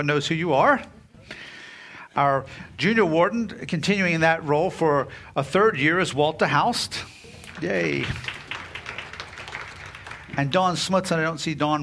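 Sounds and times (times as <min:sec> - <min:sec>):
speech: 0:00.0 - 0:01.5, 0:02.2 - 0:08.4, 0:10.4 - 0:11.8
audience clapping: 0:07.2 - 0:11.3.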